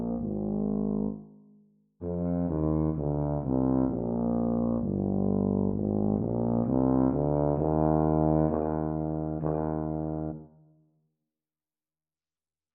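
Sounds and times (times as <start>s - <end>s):
B-flat tuba duet playing a sea song: 0.0s - 1.2s, 2.0s - 10.6s.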